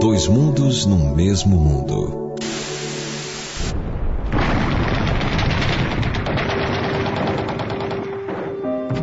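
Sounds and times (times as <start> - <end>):
speech: 0.2 - 2.2
missiles launching in a television news report: 2.4 - 8.6
bombs exploding in a television news report: 2.5 - 9.0.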